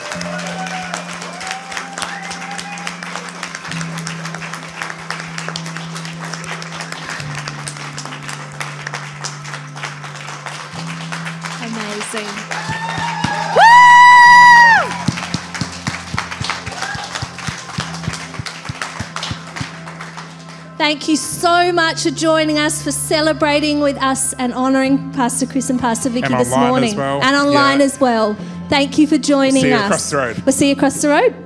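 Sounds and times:
loud rising whoop or cheer: 0.0 - 3.0, 12.6 - 15.1, 16.7 - 17.2
crowd standing ovation applause: 0.0 - 20.8, 26.2 - 27.9
speech: 20.9 - 31.4.

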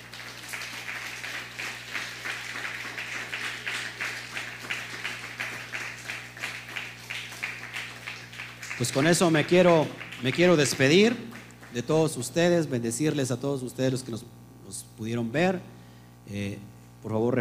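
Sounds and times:
audience applause: 0.0 - 12.2
speech: 8.8 - 17.3.

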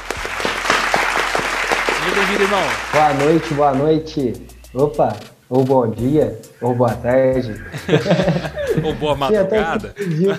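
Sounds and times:
applause: 0.0 - 4.0
speech: 2.1 - 10.3
laughter: 6.6 - 10.3.

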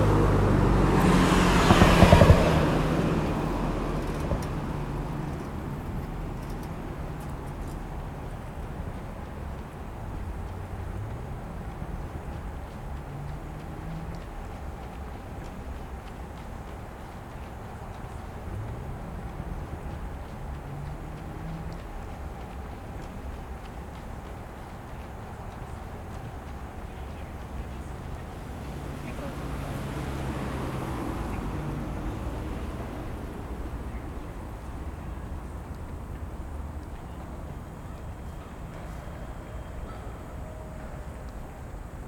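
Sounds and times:
loud vehicle passing: 0.0 - 42.0
traffic rumble around Tokyo Olympic Stadium in Shinjuku: 0.0 - 42.0
faint voices: 11.0 - 42.0.

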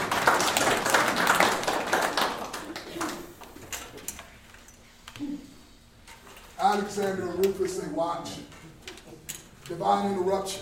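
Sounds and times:
audience clapping: 0.0 - 3.6
speech: 7.0 - 8.5, 9.7 - 10.6.

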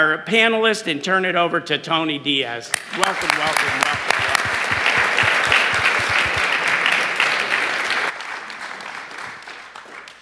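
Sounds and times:
speech: 0.0 - 4.4
applause: 2.7 - 10.2.

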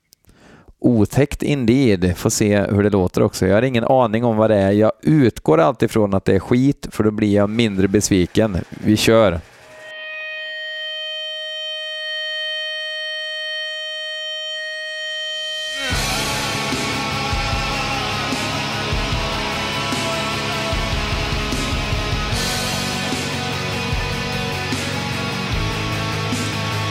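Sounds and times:
speech: 0.8 - 9.5
metal band song playing: 9.6 - 26.8.

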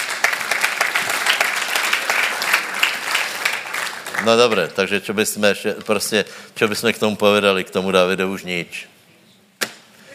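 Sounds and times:
audience applause: 0.0 - 4.8
speech: 4.2 - 9.0.

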